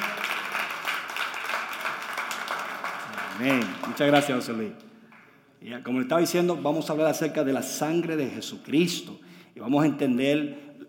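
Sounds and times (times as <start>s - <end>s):
crowd applause: 0.0s - 4.5s
speech: 3.4s - 4.8s, 5.6s - 10.8s.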